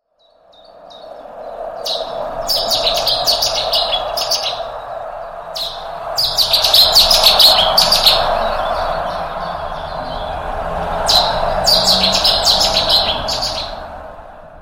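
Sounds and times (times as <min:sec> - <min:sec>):
Cetti's warbler singing: 0:00.0 - 0:13.9.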